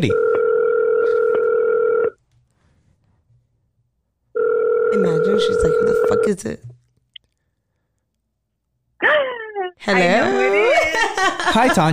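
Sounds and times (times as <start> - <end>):
speech: 0.0 - 0.3, 5.0 - 6.8, 9.8 - 11.9
telephone tone dialing a call-in caller: 0.0 - 2.2, 4.4 - 6.2.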